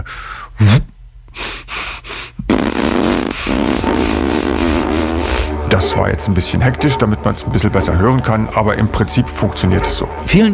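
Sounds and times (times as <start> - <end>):
air pushed from puffed cheeks while breathing: 1.3 - 5.6
speech: 5.8 - 10.5.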